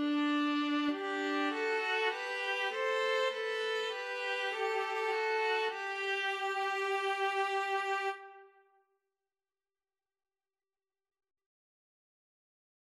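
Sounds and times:
string trio playing: 0.0 - 8.2.

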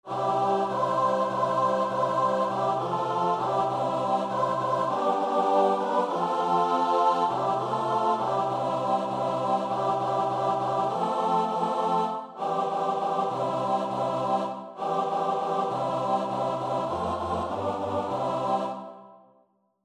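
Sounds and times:
choir singing: 0.0 - 19.3.

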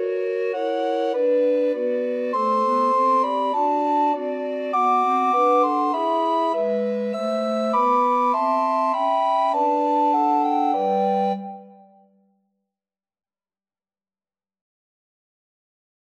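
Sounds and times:
recorder quartet: 0.0 - 11.9.

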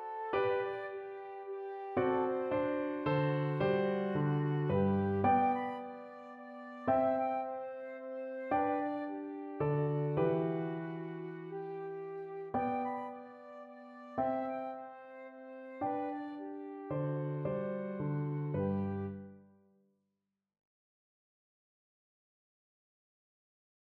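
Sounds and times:
flute playing a minuet: 0.0 - 19.3.

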